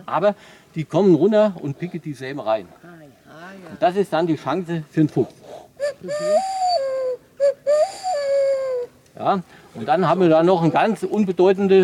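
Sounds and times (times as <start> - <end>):
speech: 0.1 - 6.6, 9.2 - 11.8
person imitating stock dove cooing: 5.8 - 9.0.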